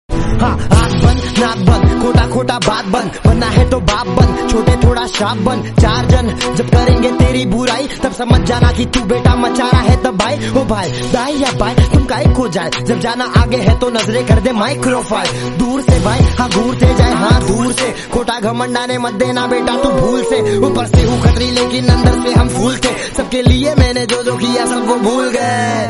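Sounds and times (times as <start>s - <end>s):
trending rap song ringtone: 0.4s - 25.8s.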